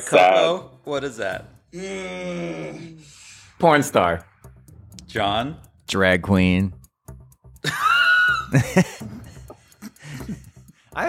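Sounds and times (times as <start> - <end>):
speech: 0.0 - 4.3, 5.1 - 6.8, 7.6 - 7.9, 8.5 - 9.2
voice imitating a donkey's bray: 1.8 - 3.0.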